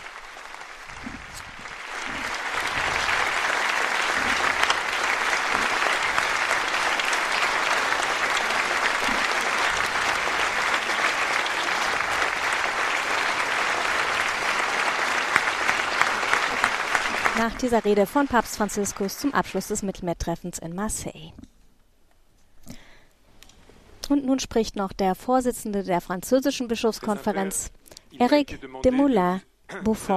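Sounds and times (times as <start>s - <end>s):
standing ovation applause after speech: 0.0s - 19.8s
speech: 17.5s - 21.4s, 24.3s - 30.1s.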